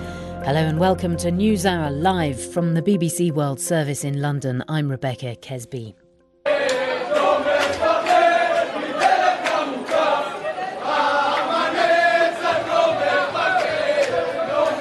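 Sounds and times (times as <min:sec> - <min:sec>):
speech: 0:00.5 - 0:06.0
jubilant crowd singing at Ben Gurion Airport in Tel Aviv: 0:06.5 - 0:14.8.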